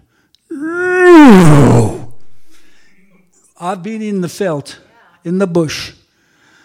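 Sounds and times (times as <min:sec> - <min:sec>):
speech: 0:00.6 - 0:01.9, 0:03.7 - 0:06.0
lion roaring in a game park: 0:01.0 - 0:02.8.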